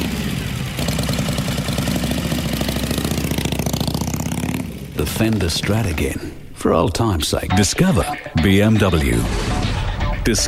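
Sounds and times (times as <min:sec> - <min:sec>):
Harley-Davidson motorcycle engine running: 0:00.0 - 0:06.0
speech: 0:05.0 - 0:09.7, 0:10.3 - 0:10.4.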